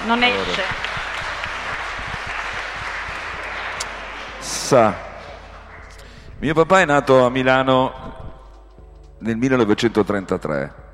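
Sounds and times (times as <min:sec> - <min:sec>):
speech: 0:00.0 - 0:00.9, 0:04.7 - 0:05.1, 0:06.4 - 0:08.2, 0:09.2 - 0:10.8
audience applause: 0:00.0 - 0:06.2.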